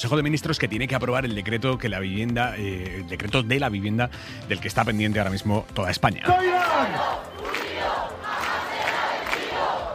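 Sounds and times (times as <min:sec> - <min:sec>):
speech: 0:00.0 - 0:07.3
crowd of protest campers chanting: 0:06.8 - 0:09.9.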